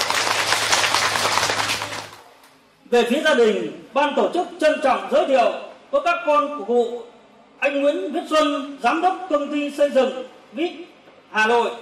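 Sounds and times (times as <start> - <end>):
audience applause at a ceremony welcoming guests: 0.0 - 2.2
speech: 2.9 - 11.8.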